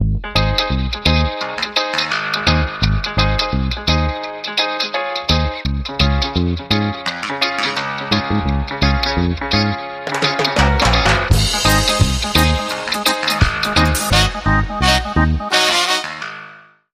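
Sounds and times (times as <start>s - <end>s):
reggae music: 0.0s - 16.6s.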